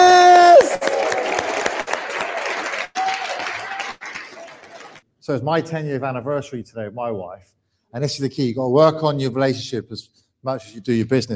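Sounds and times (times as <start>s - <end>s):
audience applause: 0.3s - 5.0s
speech: 5.3s - 11.3s.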